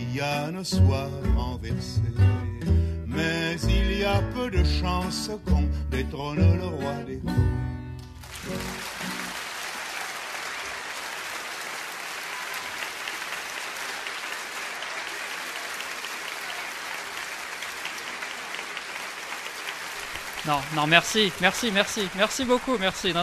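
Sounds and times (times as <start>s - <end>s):
speech: 0.2s - 7.7s, 20.5s - 23.2s
audience applause: 8.2s - 23.2s.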